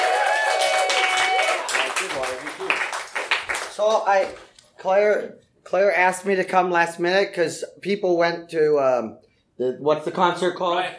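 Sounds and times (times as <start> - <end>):
comedy show audience cheering: 0.0 - 2.8
comedy show audience applause welcoming the next comedian: 0.0 - 4.6
speech: 3.8 - 10.9.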